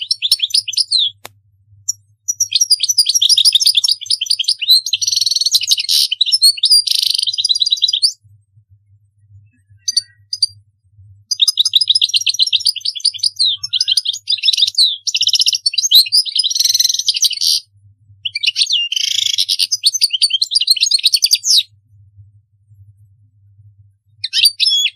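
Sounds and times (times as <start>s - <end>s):
European goldfinch twittering song: 0.0s - 1.2s, 1.8s - 8.3s, 9.2s - 21.7s, 24.2s - 24.9s.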